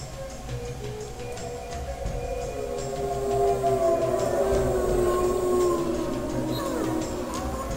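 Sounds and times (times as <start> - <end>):
wolf king's earth-shaking roar: 2.0 - 7.7.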